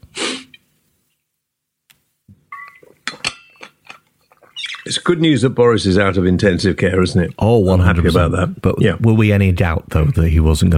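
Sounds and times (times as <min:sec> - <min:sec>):
glass clinking while someone drinks: 0:02.6 - 0:04.8
speech: 0:04.9 - 0:10.7.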